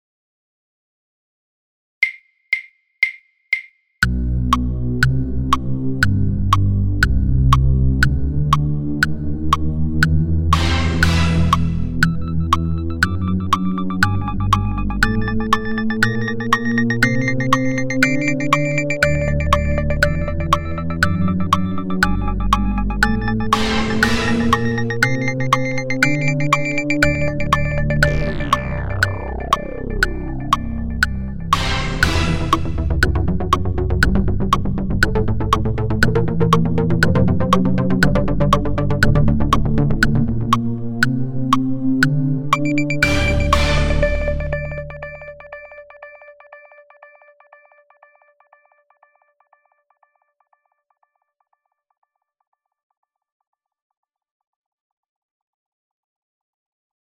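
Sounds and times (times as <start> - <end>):
synth clicks: 2.0 - 45.4.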